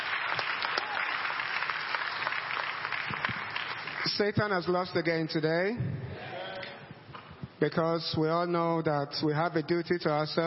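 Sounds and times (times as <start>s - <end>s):
audience applause: 0.0s - 4.4s
speech: 4.0s - 6.0s, 7.6s - 10.4s.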